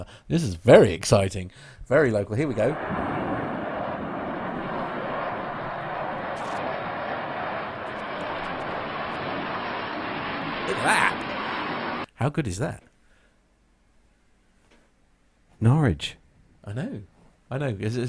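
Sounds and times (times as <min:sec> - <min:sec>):
speech: 0:00.1 - 0:03.1, 0:12.2 - 0:12.9, 0:15.6 - 0:18.0
aircraft engines roaring as planes fly past at Norwich Airport: 0:02.6 - 0:12.1.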